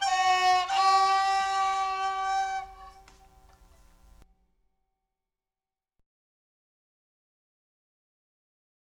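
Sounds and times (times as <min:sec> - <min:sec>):
minuet for recorder and violin: 0:00.0 - 0:04.2.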